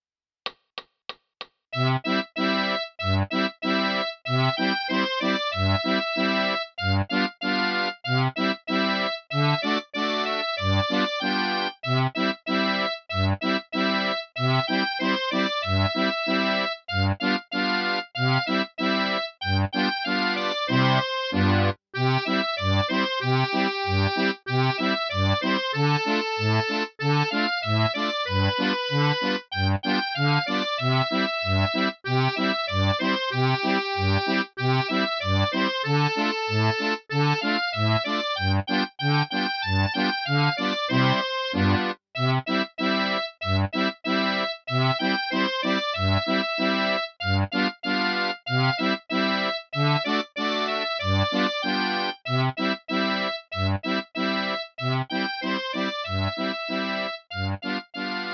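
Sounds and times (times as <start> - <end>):
accordion playing a Christmas carol: 1.8 - 58.3.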